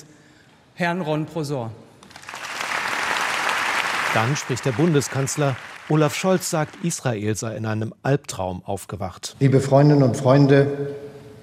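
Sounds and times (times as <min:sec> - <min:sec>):
speech: 0:00.8 - 0:01.9, 0:04.1 - 0:11.0
applause in parliament: 0:02.1 - 0:07.2.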